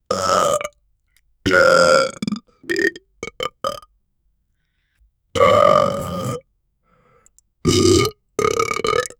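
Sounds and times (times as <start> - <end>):
realistic burps: 0.1 - 0.8, 1.5 - 3.9, 5.4 - 6.5, 7.6 - 9.1.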